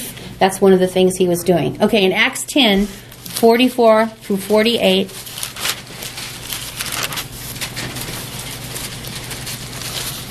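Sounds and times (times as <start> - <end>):
low steady hum: 0.0 - 10.2
speech: 0.4 - 5.3
Bible pages turning: 5.1 - 10.2.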